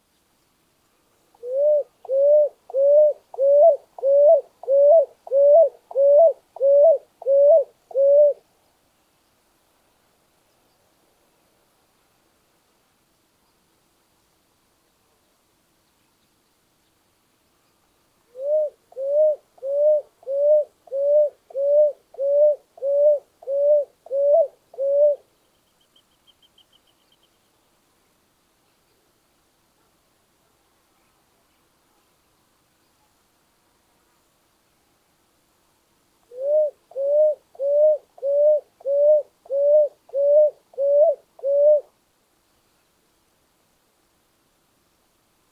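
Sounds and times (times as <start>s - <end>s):
grey-eyed ground dove: 1.3s - 8.4s, 18.3s - 27.4s, 36.3s - 41.9s.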